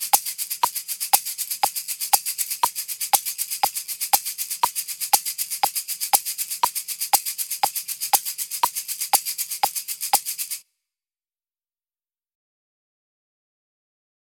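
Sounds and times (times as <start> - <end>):
shakers playing accented sixteenth notes: 0.0 - 10.6.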